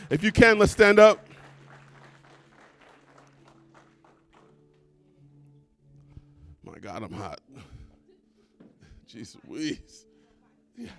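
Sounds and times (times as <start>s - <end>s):
speech: 0.1s - 1.2s, 6.8s - 7.7s, 9.1s - 10.1s, 10.8s - 10.9s
applause: 0.6s - 4.6s.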